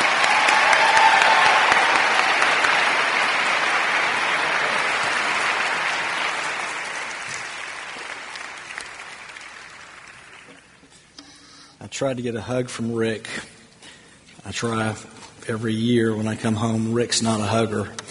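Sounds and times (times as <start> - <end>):
audience clapping in welcome: 0.0 - 10.9
speech: 12.0 - 13.6, 14.5 - 18.0.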